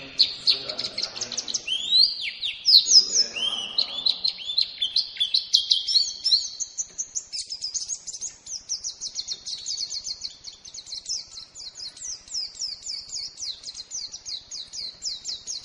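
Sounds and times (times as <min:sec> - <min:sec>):
lemon-bellied white-eye from Lombok twittering: 0:00.0 - 0:15.6.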